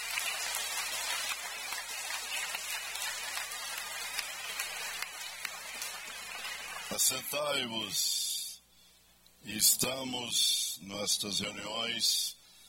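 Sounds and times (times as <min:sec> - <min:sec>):
audience applauding: 0:00.0 - 0:07.1
speech: 0:06.9 - 0:08.2, 0:09.4 - 0:12.4.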